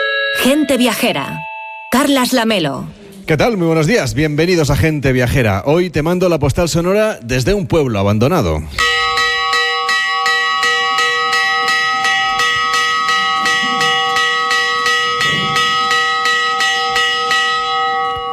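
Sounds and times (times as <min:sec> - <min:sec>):
bell ringing to announce gate closing: 0:00.0 - 0:02.8, 0:08.8 - 0:18.3
speech: 0:00.4 - 0:09.1.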